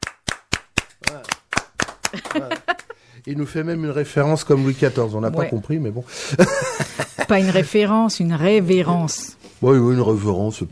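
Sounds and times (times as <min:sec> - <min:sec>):
hand clapping applause: 0:00.0 - 0:03.0
laughter: 0:02.0 - 0:03.0, 0:06.2 - 0:07.7
speech: 0:02.1 - 0:10.7.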